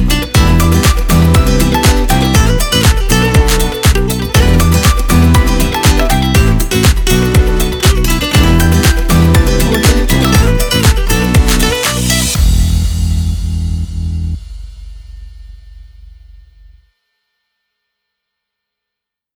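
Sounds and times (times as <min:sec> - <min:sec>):
upbeat pop music: 0:00.0 - 0:13.8.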